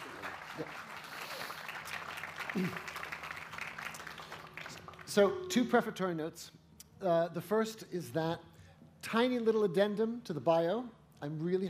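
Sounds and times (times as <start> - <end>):
lecture audience applause welcoming a speaker: 0.0 - 5.2
speech: 2.6 - 2.9, 5.2 - 8.5, 9.1 - 11.6.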